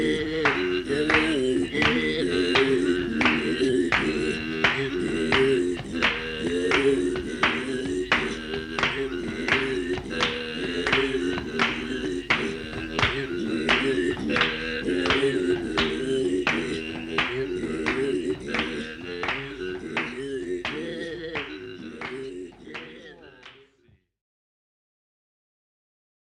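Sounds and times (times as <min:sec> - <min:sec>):
South African duet singing with ordinary umngqokolo overtone singing: 0:00.0 - 0:23.6.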